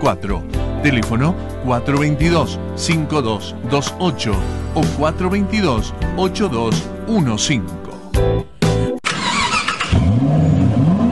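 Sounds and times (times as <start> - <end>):
speech: 0.0 - 8.4
car engine starting and revving: 9.0 - 11.1.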